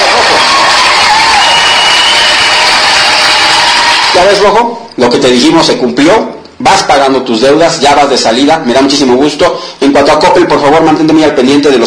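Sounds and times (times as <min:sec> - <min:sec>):
crowd applause: 0:00.0 - 0:04.3
speech: 0:04.2 - 0:11.8.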